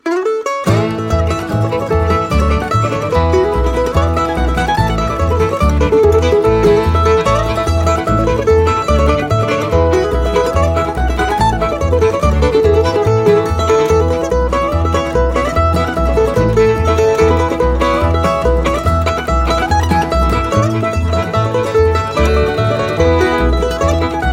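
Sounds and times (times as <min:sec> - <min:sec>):
mandolin ensemble: 0:00.0 - 0:24.3.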